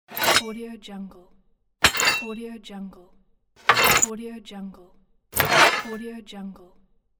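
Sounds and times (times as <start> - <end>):
axe unsheathing: 0.1 - 0.5, 1.8 - 2.4, 3.7 - 4.1, 5.4 - 6.0.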